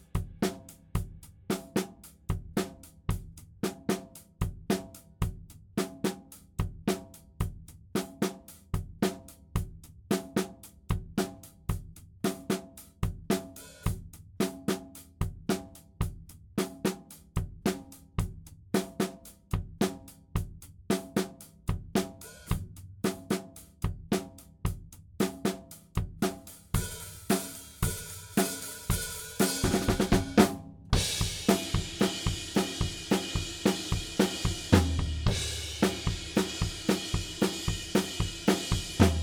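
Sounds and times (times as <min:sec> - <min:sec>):
drums: 0:00.0 - 0:39.2.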